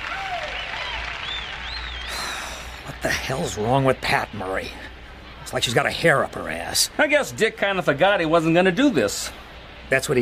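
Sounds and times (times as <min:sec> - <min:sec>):
large crowd applauding: 0:00.0 - 0:03.4
high sliding whistles: 0:00.3 - 0:02.3
speech: 0:03.0 - 0:04.9, 0:05.5 - 0:10.2.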